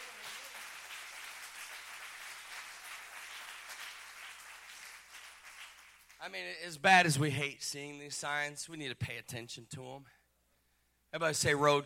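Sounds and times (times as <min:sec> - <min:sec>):
crowd clapping: 0:00.0 - 0:06.4
speech: 0:06.2 - 0:10.2, 0:11.1 - 0:11.8.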